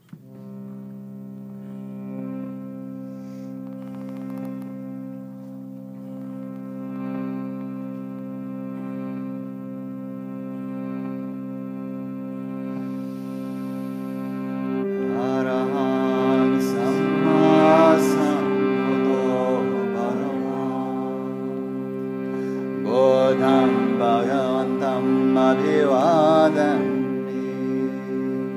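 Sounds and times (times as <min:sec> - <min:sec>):
harmonium: 0:00.0 - 0:28.5
puja chanting: 0:12.8 - 0:28.5.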